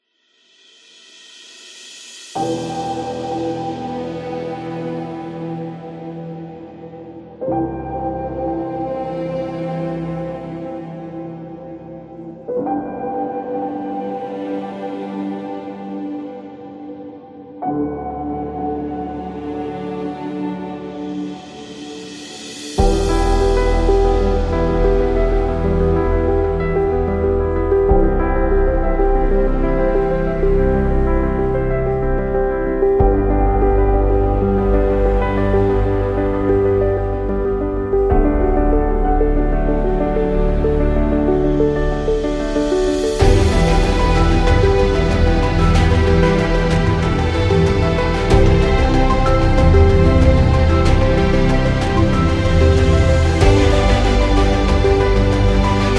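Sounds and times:
emotional piano: 0.9s - 55.9s.

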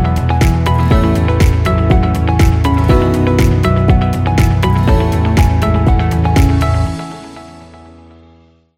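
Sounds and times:
upbeat corporate music loop: 0.0s - 6.9s.

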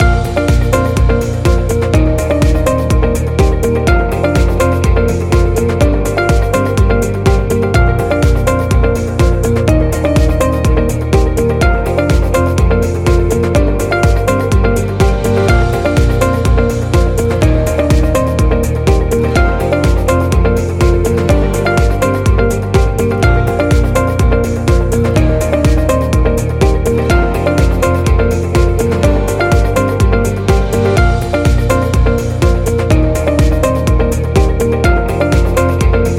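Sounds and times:
corporate music loop for real estate: 0.0s - 36.1s.

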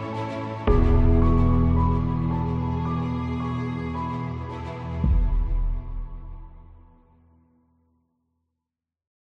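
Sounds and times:
epic movie trailer music: 0.0s - 7.1s.

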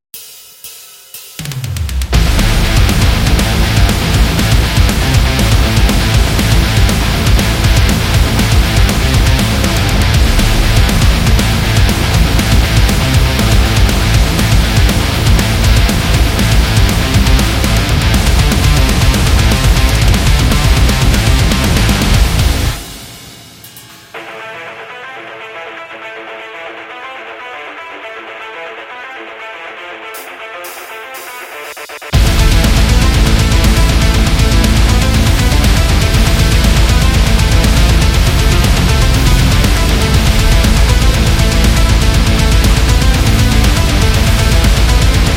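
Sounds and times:
Tabata metal workout music: 0.2s - 45.3s.

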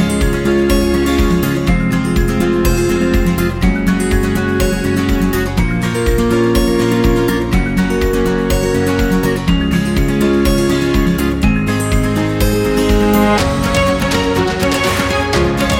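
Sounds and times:
upbeat acoustic guitar background music: 0.0s - 15.7s.

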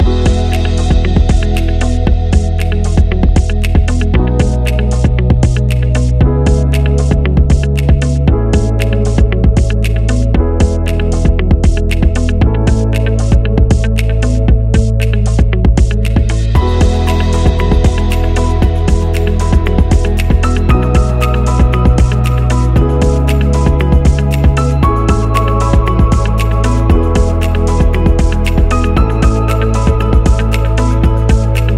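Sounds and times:
corporate marketing background music: 0.0s - 31.7s.

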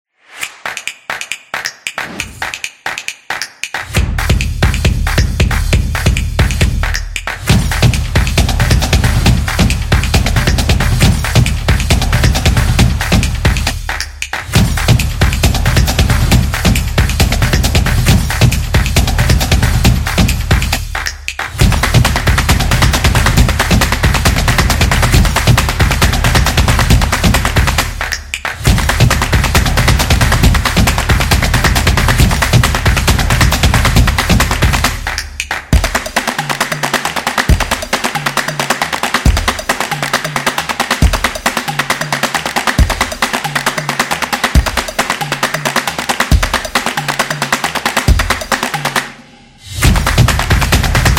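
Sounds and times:
drumming: 0.4s - 49.1s, 49.8s - 51.1s.

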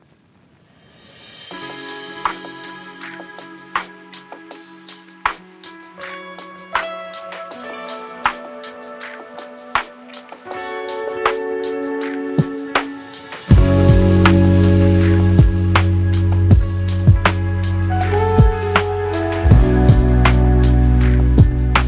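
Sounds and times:
cosmic chillout lo-fi music: 1.0s - 21.8s.

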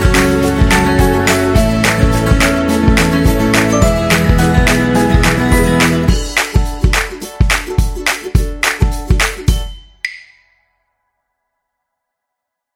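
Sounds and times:
upbeat folk music: 0.0s - 9.8s.

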